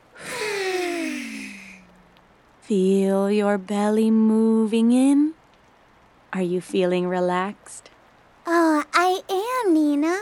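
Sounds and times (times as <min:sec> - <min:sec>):
slow breath in through the nose and out through the mouth: 0:00.1 - 0:01.9
speech: 0:02.7 - 0:05.4, 0:06.3 - 0:07.9, 0:08.5 - 0:10.2.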